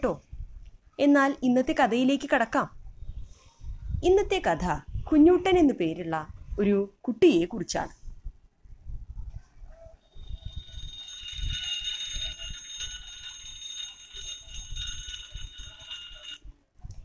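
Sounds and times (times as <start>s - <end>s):
speech: 0.0s - 0.3s, 1.0s - 2.8s, 4.0s - 8.0s
alarm clock ringing: 10.0s - 16.4s.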